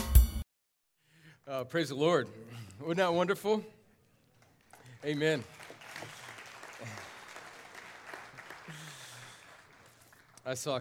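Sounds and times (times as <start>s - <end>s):
speech: 1.5s - 3.8s, 5.0s - 5.6s, 10.4s - 10.8s
audience clapping: 4.3s - 10.8s.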